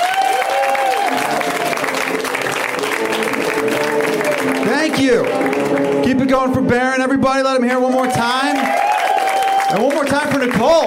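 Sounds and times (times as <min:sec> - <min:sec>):
cheering and whooping: 0:00.0 - 0:02.1, 0:07.8 - 0:10.1
audience applause for comedian: 0:00.0 - 0:06.7, 0:07.7 - 0:10.8
speech: 0:04.9 - 0:05.4, 0:06.0 - 0:08.8, 0:09.7 - 0:10.8.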